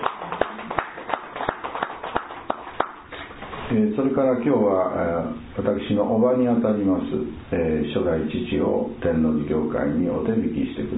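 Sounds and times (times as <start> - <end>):
audience applause: 0.0 - 3.1
speech: 3.7 - 10.9.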